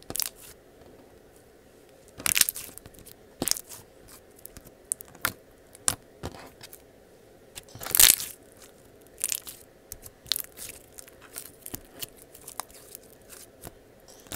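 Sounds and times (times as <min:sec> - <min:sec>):
soft low hum: 0:00.0 - 0:14.3
slime squeezed and pressed, squelching and popping: 0:02.2 - 0:03.8, 0:07.6 - 0:14.3.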